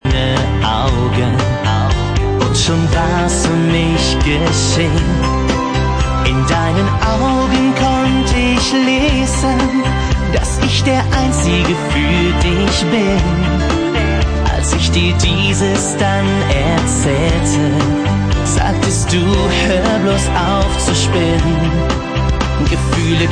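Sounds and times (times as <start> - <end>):
Schlager singer singing: 0.0 - 23.3.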